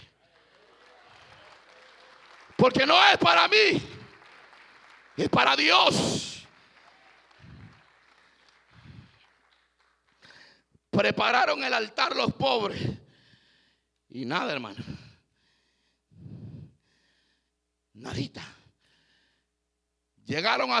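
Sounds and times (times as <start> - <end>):
audience applauding: 0.0 - 10.5
speech: 2.6 - 4.0, 5.2 - 6.3, 11.0 - 13.0, 14.1 - 15.0, 18.0 - 18.6, 20.3 - 20.7.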